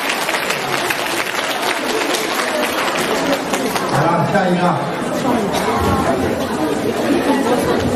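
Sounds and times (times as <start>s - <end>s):
audience applause: 0.0s - 4.1s
speech: 4.4s - 7.8s.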